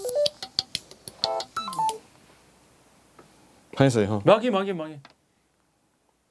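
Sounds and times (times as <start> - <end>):
phone ringing with electronic ringtone during interview: 1.3 - 2.0
speech: 3.8 - 5.1.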